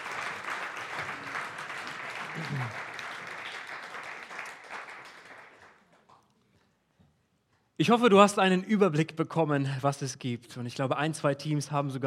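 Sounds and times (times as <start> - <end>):
applause: 0.0 - 6.7
speech: 2.4 - 2.9, 7.8 - 12.0.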